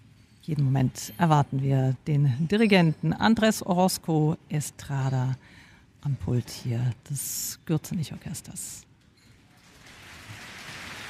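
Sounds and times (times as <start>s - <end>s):
speech: 0.5s - 8.9s
concert audience applause: 9.7s - 11.0s.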